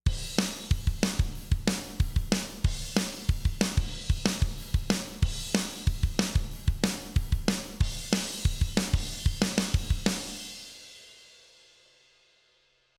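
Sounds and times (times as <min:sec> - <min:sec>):
drums: 0:00.0 - 0:12.9.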